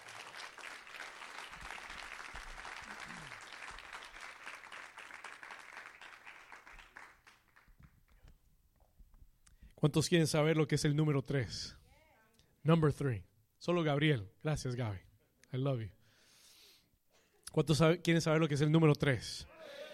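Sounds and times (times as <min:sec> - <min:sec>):
loud audience applause: 0:00.0 - 0:07.8
speech: 0:09.8 - 0:11.8, 0:12.6 - 0:16.0, 0:17.5 - 0:19.5.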